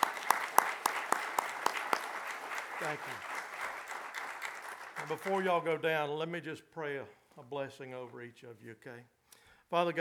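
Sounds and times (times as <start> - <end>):
audience applause: 0.0 - 5.6
speech: 2.8 - 3.3, 5.0 - 9.9.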